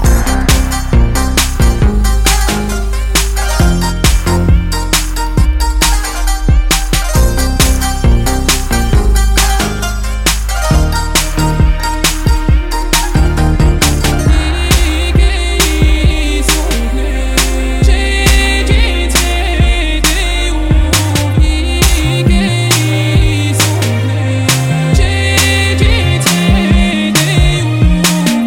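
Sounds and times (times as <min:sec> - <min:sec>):
music: 0:00.0 - 0:28.4.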